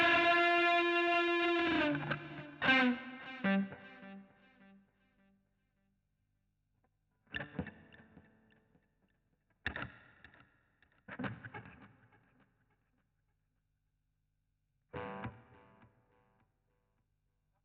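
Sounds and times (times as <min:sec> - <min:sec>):
guitar solo: 0:00.0 - 0:04.3.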